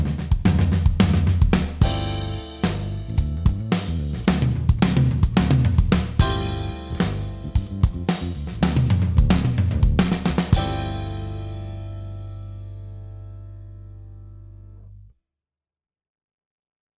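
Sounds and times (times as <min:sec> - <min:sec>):
pop drum fills: 0:00.0 - 0:12.1.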